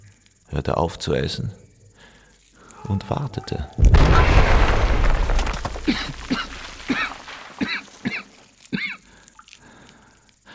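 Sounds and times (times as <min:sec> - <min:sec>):
speech: 0:00.5 - 0:01.6, 0:02.8 - 0:04.5, 0:05.8 - 0:07.1
explosion blasting into a bunker: 0:03.8 - 0:07.3.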